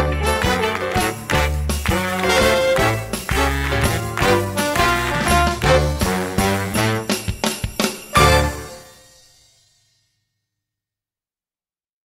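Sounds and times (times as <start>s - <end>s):
slowed rock accompaniment: 0.0s - 9.2s.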